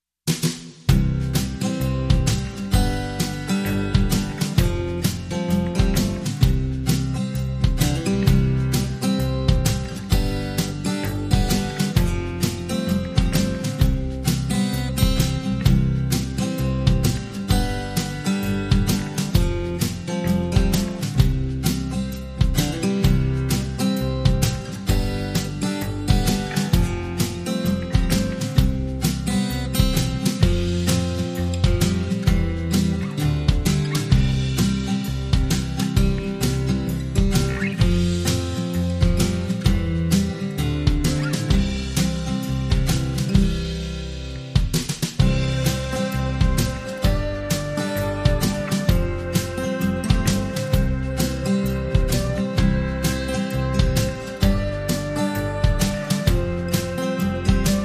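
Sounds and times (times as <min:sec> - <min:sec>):
underscore music: 0:00.3 - 0:57.8.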